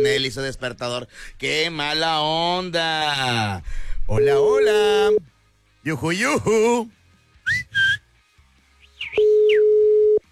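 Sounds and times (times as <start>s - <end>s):
speech: 0.0s - 7.8s
short rising whistled or sung chirps: 7.4s - 8.1s, 8.8s - 9.6s
telephone ringback tone: 9.2s - 10.2s.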